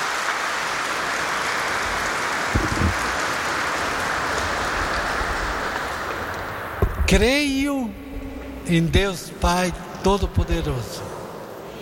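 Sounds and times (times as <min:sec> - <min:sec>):
crowd audience applause: 0:00.0 - 0:06.9
speech: 0:07.1 - 0:08.0, 0:08.7 - 0:11.2.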